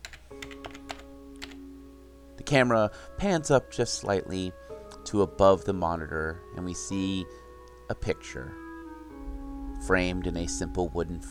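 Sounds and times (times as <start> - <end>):
computer keyboard typing: 0.0 - 1.6
speech: 2.5 - 8.6, 9.8 - 11.2.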